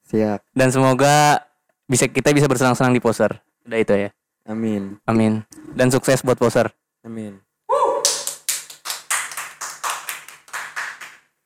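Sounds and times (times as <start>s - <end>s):
speech: 0.1s - 7.4s
hands clapping: 8.0s - 11.4s.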